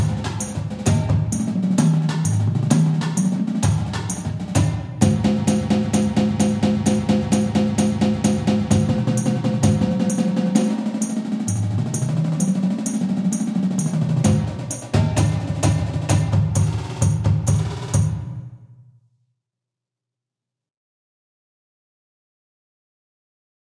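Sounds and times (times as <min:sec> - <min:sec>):
drum rolls: 0:00.0 - 0:18.6.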